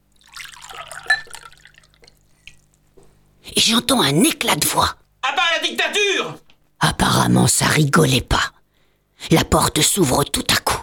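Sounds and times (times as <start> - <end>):
water poured from carafe into glass: 0.1 - 2.6
speech: 3.6 - 5.0, 5.6 - 8.5, 9.3 - 10.8.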